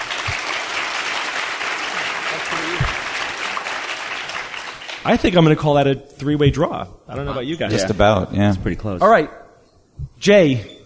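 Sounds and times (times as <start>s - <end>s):
audience applause: 0.0s - 5.4s
speech: 2.4s - 3.0s, 5.0s - 9.4s, 10.0s - 10.8s.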